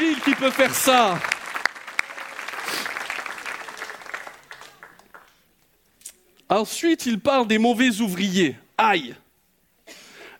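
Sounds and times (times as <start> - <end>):
audience applauding: 0.0 - 5.5
speech: 0.2 - 1.4, 6.5 - 9.2.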